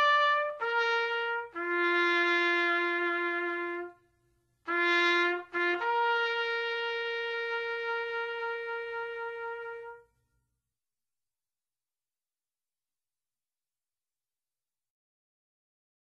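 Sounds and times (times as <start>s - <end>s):
military funeral trumpet playing: 0.0s - 10.2s.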